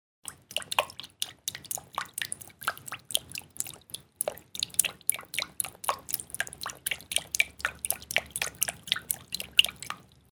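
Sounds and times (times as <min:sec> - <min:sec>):
water splashing: 0:00.2 - 0:10.3.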